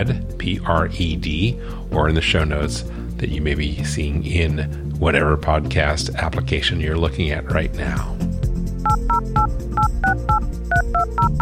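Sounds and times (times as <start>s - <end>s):
speech: 0.0s - 8.2s
telephone touch-tone dialing: 8.9s - 11.4s.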